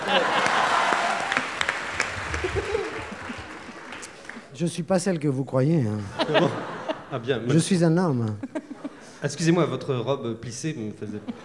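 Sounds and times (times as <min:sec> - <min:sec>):
audience applause: 0:00.0 - 0:04.5
laughter: 0:00.0 - 0:04.5, 0:05.9 - 0:10.0, 0:11.0 - 0:11.4
speech: 0:00.1 - 0:00.6, 0:04.6 - 0:08.6, 0:09.2 - 0:11.4.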